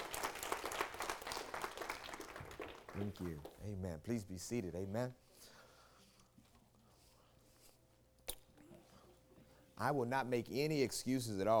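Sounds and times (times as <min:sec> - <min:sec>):
church congregation applauding a woman speaker: 0:00.0 - 0:03.7
speech: 0:03.0 - 0:05.6, 0:09.8 - 0:11.5.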